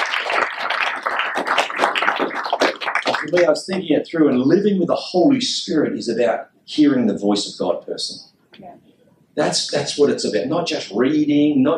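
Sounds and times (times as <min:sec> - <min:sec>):
audience clapping together: 0:00.0 - 0:03.8
speech: 0:03.2 - 0:08.8, 0:09.4 - 0:11.7.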